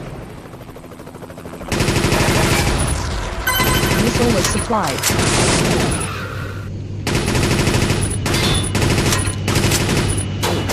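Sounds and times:
automatic machine-gun fire in a video game: 0:01.7 - 0:04.4, 0:07.1 - 0:10.5
speech: 0:04.3 - 0:06.0.

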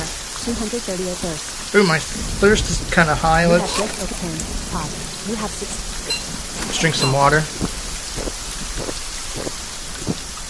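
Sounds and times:
rain falling: 0:00.0 - 0:10.4
speech: 0:00.4 - 0:07.8.

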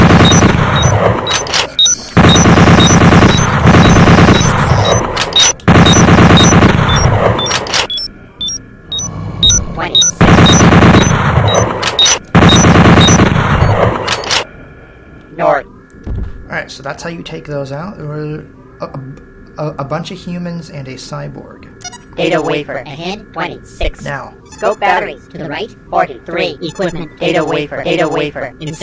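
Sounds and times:
dense rumbling background: 0:00.0 - 0:28.8
automatic bolt gun firing in video game: 0:02.2 - 0:07.0, 0:10.2 - 0:13.4
speech: 0:16.8 - 0:28.8.

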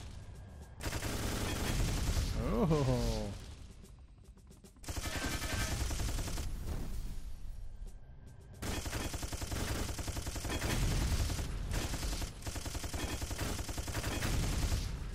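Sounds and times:
automatic gunfire in a shooting video game: 0:00.8 - 0:03.3, 0:04.8 - 0:07.2, 0:08.6 - 0:15.0
speech: 0:02.6 - 0:03.4.

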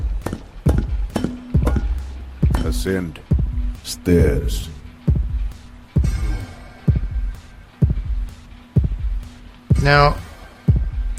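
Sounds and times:
game heartbeat sound effect: 0:00.0 - 0:11.1
low constant hum: 0:00.0 - 0:11.1
speech: 0:02.7 - 0:03.3, 0:03.9 - 0:04.8, 0:09.8 - 0:10.2.

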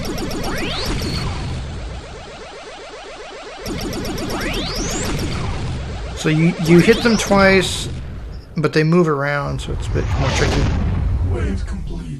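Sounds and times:
electronic laser shots fired by enemies in a video game: 0:00.0 - 0:08.6
speech: 0:06.2 - 0:08.0, 0:08.6 - 0:12.1.

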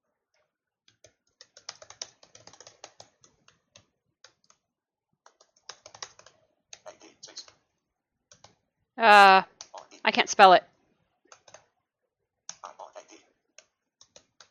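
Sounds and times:
typing on a computer keyboard: 0:00.9 - 0:04.6, 0:05.2 - 0:07.6, 0:08.3 - 0:08.6, 0:11.3 - 0:11.7, 0:13.6 - 0:14.4
speech: 0:09.0 - 0:09.5, 0:10.2 - 0:10.7.

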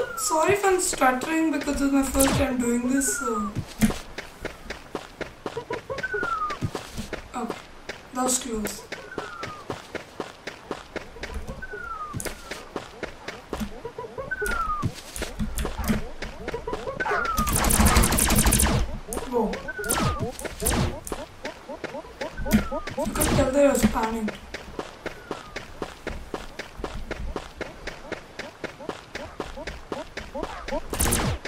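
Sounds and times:
running footsteps: 0:00.0 - 0:31.4
speech: 0:00.2 - 0:04.0, 0:08.2 - 0:09.0
video game gunshots: 0:17.1 - 0:19.0, 0:19.8 - 0:21.2, 0:23.0 - 0:24.0, 0:30.9 - 0:31.4.

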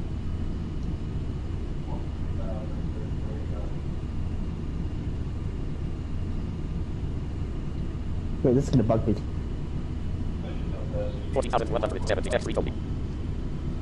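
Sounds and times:
Southwest Airlines Boeing 737 MAX 8 cabin noise during takeoff or landing: 0:00.0 - 0:13.8
speech: 0:08.5 - 0:09.4, 0:11.4 - 0:12.9.

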